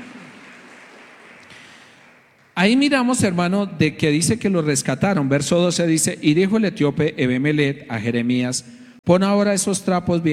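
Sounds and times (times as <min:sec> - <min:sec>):
audience applauding: 0:00.0 - 0:02.6
speech: 0:02.6 - 0:10.3.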